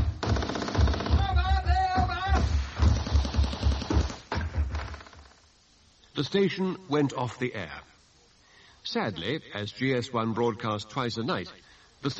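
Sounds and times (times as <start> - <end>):
sound-effect gunfire staging a full-scale Gestapo attack, BBC effects: 0.2 - 1.5, 2.4 - 4.3
speech: 6.2 - 7.9, 8.8 - 12.1.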